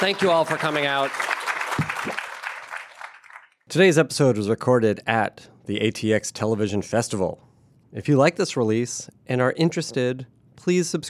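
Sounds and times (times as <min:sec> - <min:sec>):
speech: 0:00.0 - 0:02.2, 0:03.7 - 0:11.0
audience applauding for panelists: 0:00.0 - 0:03.6.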